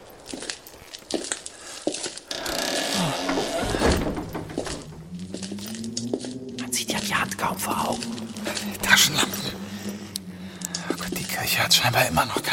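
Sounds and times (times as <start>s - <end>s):
hinges creaking: 0.4s - 10.0s
heavy wooden thumps and knocks: 2.3s - 5.5s
stiff church door scraping open: 2.3s - 6.0s
speech: 7.4s - 9.6s, 11.5s - 12.5s.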